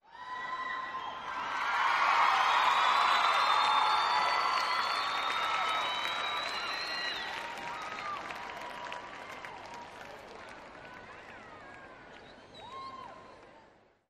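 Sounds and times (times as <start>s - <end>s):
huge crowd of 30,000 cheering: 0.0s - 13.8s
crowd whistling: 0.7s - 1.6s, 2.4s - 9.0s
crowd applause: 1.1s - 12.3s.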